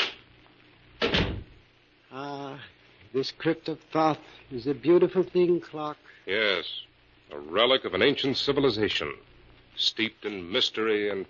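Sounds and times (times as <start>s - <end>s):
door closing in a crypt room: 1.0s - 1.6s
speech: 3.1s - 11.2s.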